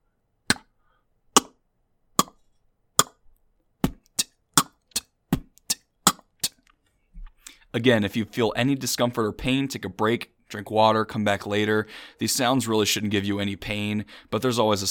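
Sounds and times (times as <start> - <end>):
beatboxed unvoiced K percussion sound: 2.2 - 2.4, 3.0 - 3.2, 3.8 - 6.7
speech: 7.7 - 14.8.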